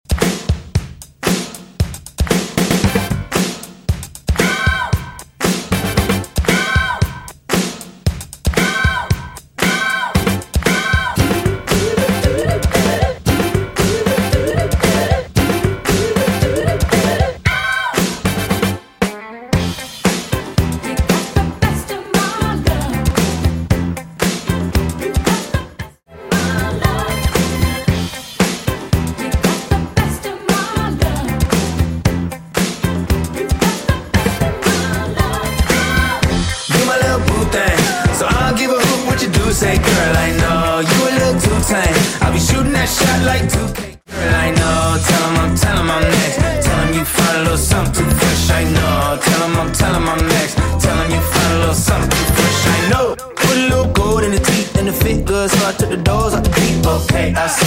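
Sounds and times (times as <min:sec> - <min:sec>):
drums in a mashup: 0:00.0 - 0:57.6.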